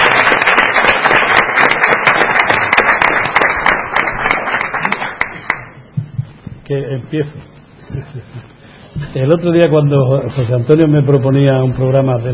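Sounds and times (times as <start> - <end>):
crowd clapping: 0.0 - 5.8
speech: 6.7 - 12.3.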